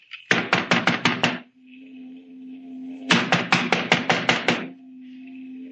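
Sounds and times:
knocking on a door: 0:00.3 - 0:01.4, 0:03.1 - 0:04.7.

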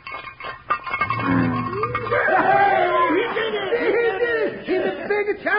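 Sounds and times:
frying pan being rattled: 0:00.0 - 0:02.6
laughter: 0:01.8 - 0:05.4.

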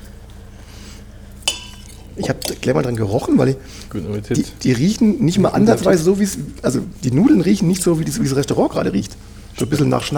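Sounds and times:
low steady hum: 0:00.0 - 0:10.1
cutlery clinking on a plate: 0:01.5 - 0:02.7
speech: 0:02.2 - 0:10.1.

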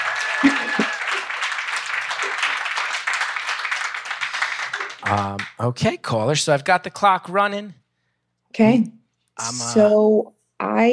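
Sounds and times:
audience applause: 0:00.0 - 0:05.8
speech: 0:05.1 - 0:07.8, 0:08.6 - 0:10.9.

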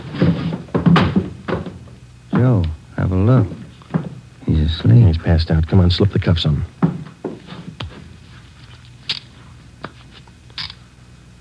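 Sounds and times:
door being tried and pushed open: 0:00.1 - 0:02.5
speech: 0:03.3 - 0:03.6, 0:04.7 - 0:06.7.

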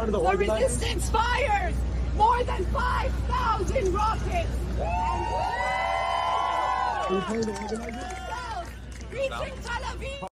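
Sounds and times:
speech: 0:00.0 - 0:05.6, 0:07.1 - 0:08.3, 0:09.2 - 0:10.3
crowd cheering: 0:04.8 - 0:09.9.

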